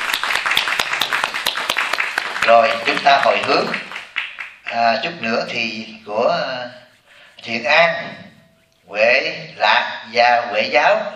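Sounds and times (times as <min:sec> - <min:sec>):
audience applause at a Buddhist Dharma talk: 0:00.0 - 0:04.9
speech: 0:02.4 - 0:03.9, 0:04.7 - 0:06.8, 0:07.4 - 0:08.3, 0:08.9 - 0:11.1.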